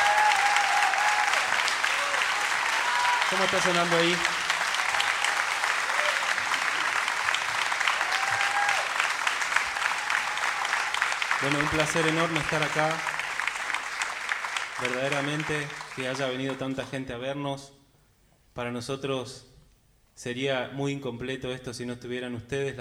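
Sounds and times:
loud applause: 0.0 - 17.0
speech: 3.3 - 4.4, 11.4 - 13.1, 14.8 - 17.8, 18.6 - 19.5, 20.2 - 22.7.

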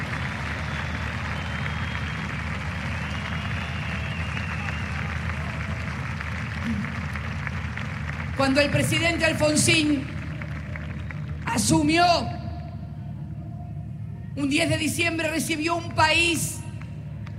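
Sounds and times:
audience applause: 0.0 - 11.5
speech: 8.4 - 10.2, 11.6 - 12.4, 14.4 - 16.6.

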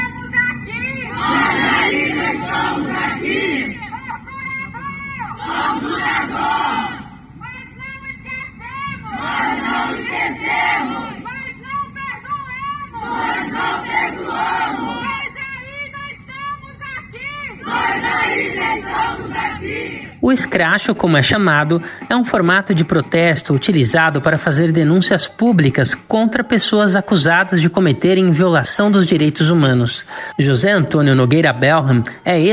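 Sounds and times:
crowd of protesters shouting in unison: 0.7 - 7.8, 8.5 - 20.3
speech: 20.3 - 32.5.

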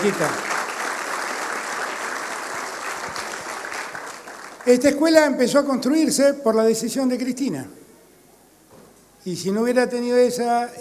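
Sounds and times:
speech: 0.0 - 0.5, 4.7 - 7.8, 9.2 - 10.7
audience applause: 0.0 - 4.9.

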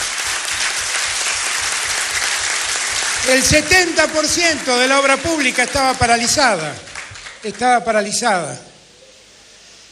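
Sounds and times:
audience applause: 0.0 - 7.6
speech: 3.3 - 8.7.

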